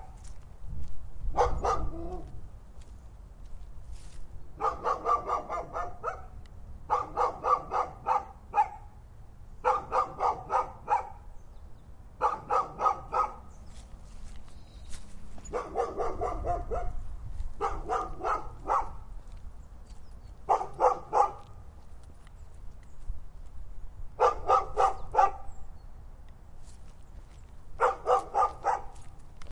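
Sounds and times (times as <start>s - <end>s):
dog barking: 1.3s - 2.3s, 4.6s - 8.9s, 9.6s - 11.2s, 12.2s - 13.5s, 15.4s - 17.0s, 17.6s - 19.1s, 20.4s - 21.5s, 24.2s - 25.5s, 27.8s - 29.0s.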